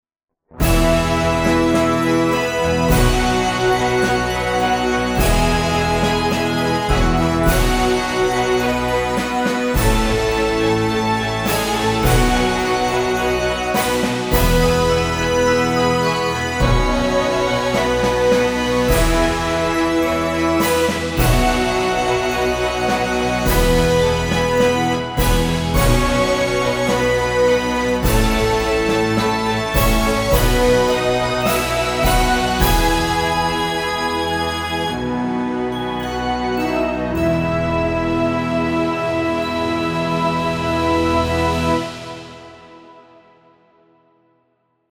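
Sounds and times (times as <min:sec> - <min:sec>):
instrumental fanfare: 0:00.6 - 0:43.0.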